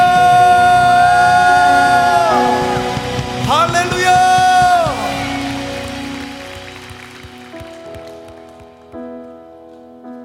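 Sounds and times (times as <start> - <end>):
victory shouts: 0.0 - 6.5
audience applause: 0.0 - 8.9.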